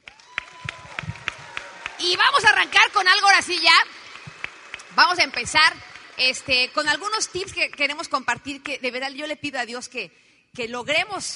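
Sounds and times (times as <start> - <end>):
audience applause: 0.0 - 7.5
speech: 2.0 - 4.0, 5.0 - 11.3.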